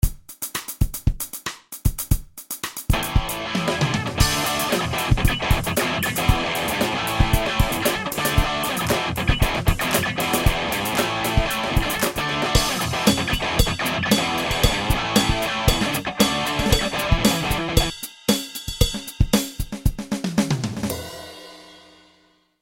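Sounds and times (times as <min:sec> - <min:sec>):
drums: 0:00.0 - 0:22.4
guitar: 0:02.9 - 0:17.9.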